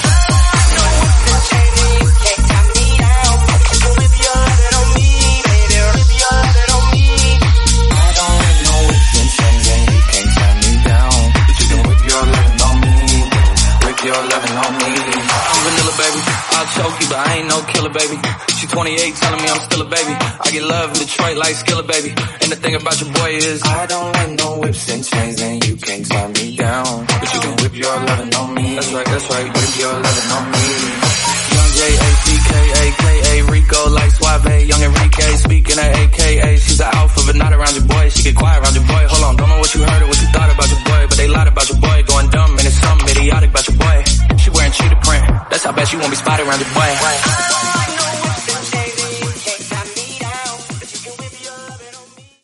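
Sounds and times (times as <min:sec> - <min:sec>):
house music at 122 bpm in B-flat minor: 0:00.0 - 0:52.4.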